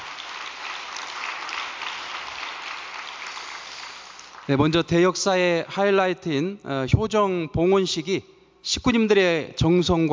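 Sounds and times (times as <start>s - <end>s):
crowd applause: 0.0s - 4.6s
speech: 4.5s - 10.1s.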